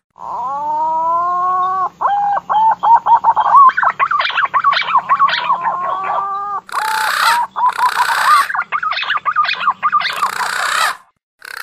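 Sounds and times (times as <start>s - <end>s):
green pigeon whistling: 0.2s - 11.1s.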